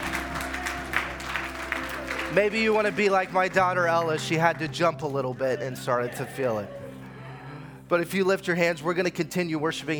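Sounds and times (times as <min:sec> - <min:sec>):
audience clapping: 0:00.0 - 0:06.6
speech: 0:02.3 - 0:06.8, 0:07.9 - 0:09.9.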